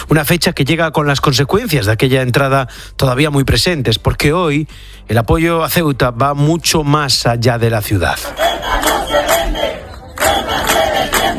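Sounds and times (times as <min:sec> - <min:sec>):
speech: 0:00.1 - 0:11.3
large crowd chanting a protest slogan: 0:08.2 - 0:11.3.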